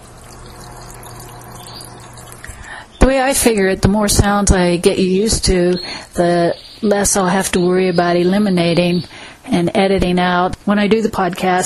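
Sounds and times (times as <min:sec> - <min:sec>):
aquarium pump running: 0:00.0 - 0:05.6
speech: 0:03.0 - 0:11.6.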